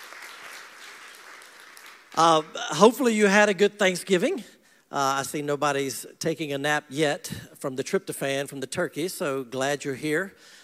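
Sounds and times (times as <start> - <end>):
audience clapping: 0.0 - 2.8
speech: 2.2 - 10.6.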